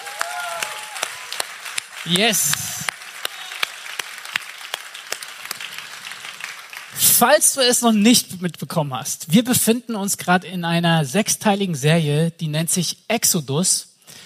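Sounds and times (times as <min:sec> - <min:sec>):
loud applause from audience: 0:00.0 - 0:07.0
speech: 0:02.0 - 0:02.7, 0:07.2 - 0:14.2.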